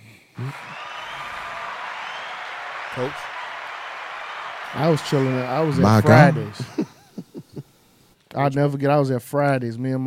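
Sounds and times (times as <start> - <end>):
hand claps: 0.4 - 6.8
speech: 3.0 - 3.3, 4.7 - 7.0, 8.4 - 10.0
laughter: 4.8 - 7.6.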